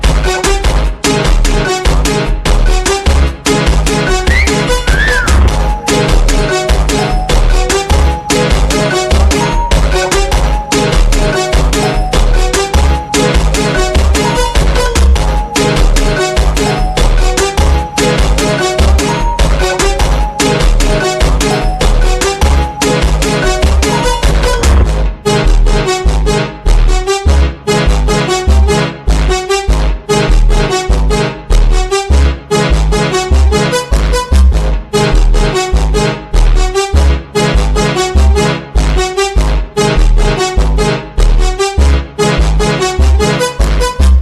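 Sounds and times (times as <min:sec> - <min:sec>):
slowed bounce funk music with reverb: 0:00.0 - 0:44.1.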